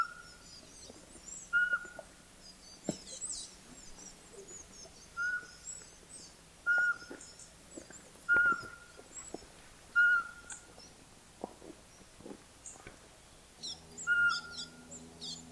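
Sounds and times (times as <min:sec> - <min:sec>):
pygmy owl calling: 0:01.5 - 0:02.1, 0:02.9 - 0:05.7, 0:06.6 - 0:07.4, 0:08.3 - 0:09.0, 0:09.9 - 0:10.7, 0:13.6 - 0:15.5.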